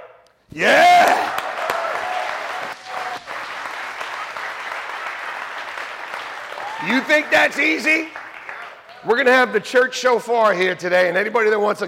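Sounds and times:
speech: 0.5s - 1.2s, 6.9s - 8.2s, 9.0s - 11.8s
church congregation applauding: 0.6s - 9.6s.

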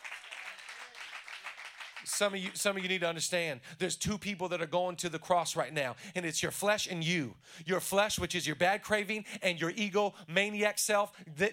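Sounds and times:
crowd clapping: 0.0s - 3.0s
speech: 2.0s - 11.5s.

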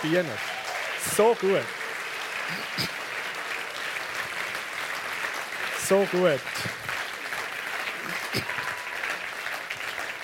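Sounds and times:
speech: 0.0s - 1.8s, 2.5s - 3.0s, 5.9s - 6.9s, 8.0s - 8.7s
audience applause: 0.0s - 10.2s.

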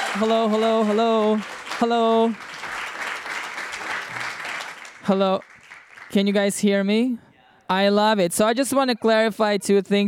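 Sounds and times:
audience applause: 0.0s - 6.4s
speech: 0.2s - 2.6s, 5.1s - 5.5s, 6.1s - 10.0s.

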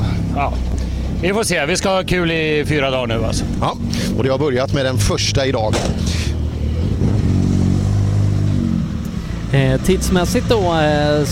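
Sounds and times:
rally car engine revving: 0.0s - 11.3s
speech: 0.4s - 6.2s, 9.5s - 11.3s.

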